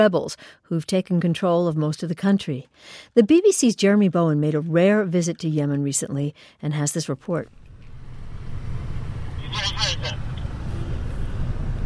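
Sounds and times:
speech: 0:00.0 - 0:07.6, 0:09.5 - 0:10.3
car engine rumbling while driving through the streets of Sana'a, Yemen: 0:07.5 - 0:11.8.

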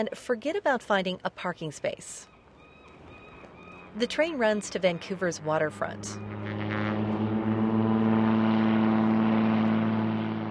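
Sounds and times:
speech: 0:00.0 - 0:02.3, 0:04.0 - 0:06.6
seaplane propeller engine droning at full power during takeoff: 0:02.8 - 0:10.4.

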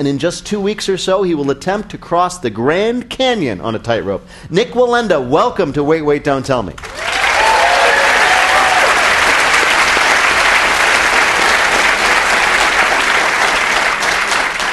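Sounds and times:
speech: 0:00.0 - 0:07.1
crowd applauding: 0:06.8 - 0:14.7.

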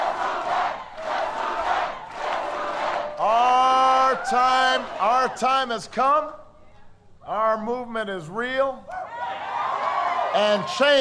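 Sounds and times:
large crowd chanting in unison at rally: 0:00.0 - 0:03.6
large crowd cheering and roaring at rally: 0:00.0 - 0:05.7, 0:08.9 - 0:10.9
speech: 0:04.3 - 0:06.4, 0:07.3 - 0:08.9, 0:10.3 - 0:10.9.

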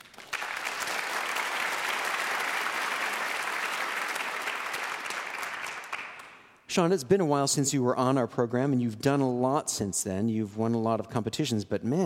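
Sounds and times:
audience applause welcoming a pianist: 0:00.0 - 0:06.4
speech: 0:06.8 - 0:12.0.

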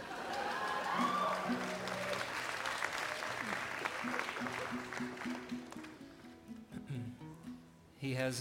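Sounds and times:
scattered cheers: 0:00.0 - 0:05.1
large audience applause: 0:00.0 - 0:06.0.

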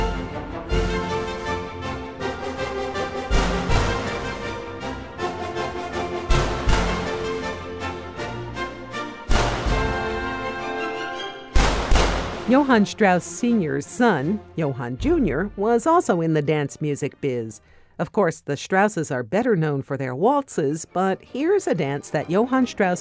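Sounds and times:
orchestral gallop music: 0:00.0 - 0:17.5, 0:20.6 - 0:22.9
sharp bangs imitating bandits' gunshots: 0:09.3 - 0:10.0, 0:11.5 - 0:12.5
speech: 0:12.5 - 0:22.9.

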